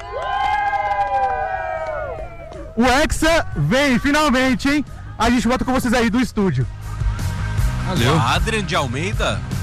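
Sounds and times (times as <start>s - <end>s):
crowd of football fans cheering and shouting: 0.0s - 6.2s
speech: 2.8s - 6.8s, 7.9s - 9.5s.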